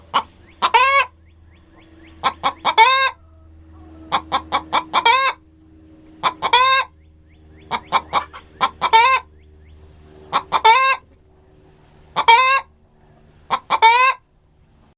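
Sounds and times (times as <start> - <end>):
egg-laying hen clucking: 0.0 - 1.2, 2.0 - 5.4, 6.2 - 7.0, 7.6 - 9.3, 10.2 - 11.1, 12.0 - 12.7, 13.4 - 14.2.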